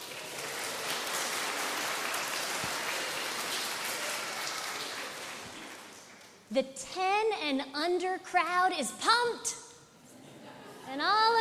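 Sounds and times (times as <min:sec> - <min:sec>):
audience clapping: 0:00.0 - 0:06.5
speech: 0:06.5 - 0:09.6, 0:10.9 - 0:11.3.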